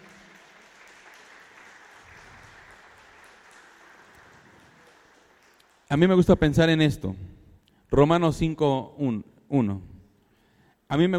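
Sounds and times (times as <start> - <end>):
audience clapping: 0.0 - 6.6
speech: 5.9 - 7.3, 7.9 - 9.9, 10.9 - 11.1.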